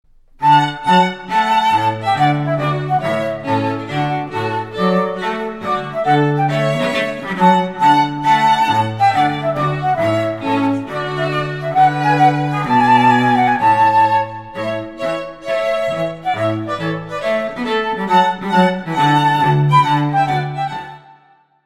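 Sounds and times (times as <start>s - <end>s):
trumpet piece: 0.4s - 21.0s.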